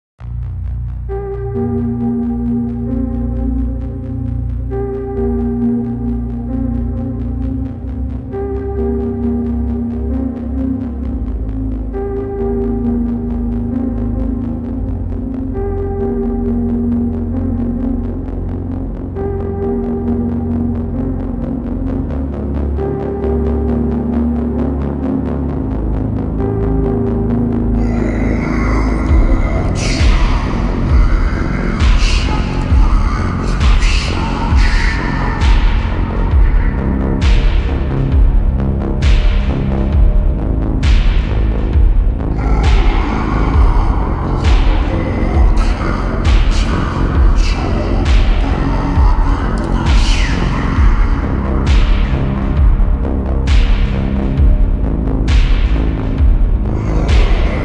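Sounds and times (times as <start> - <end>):
ultra slowed reverb music: 0.2 - 57.6.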